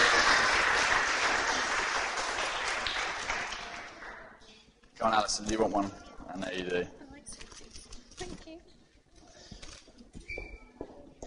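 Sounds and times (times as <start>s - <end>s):
group applauding: 0.0s - 4.4s
speech: 5.0s - 7.4s.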